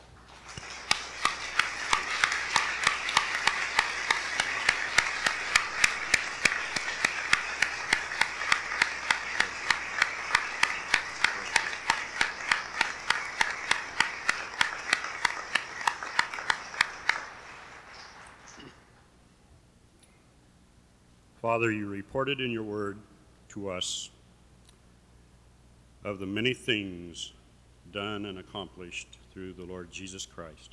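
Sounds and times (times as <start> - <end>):
audience applause: 0.0 - 18.9
speech: 21.5 - 24.1, 26.1 - 30.7.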